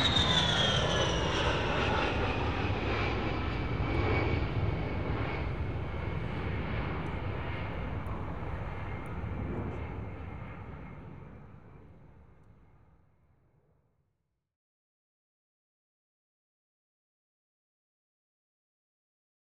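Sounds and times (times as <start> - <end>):
USAF Fairchild A-10 Thunderbolt military jet aircraft: 0.0 - 13.0.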